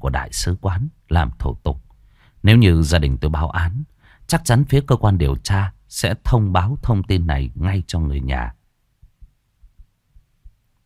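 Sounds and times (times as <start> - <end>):
speech: 0.0 - 1.8, 2.4 - 8.6
pounding heartbeat thumps: 9.0 - 10.7.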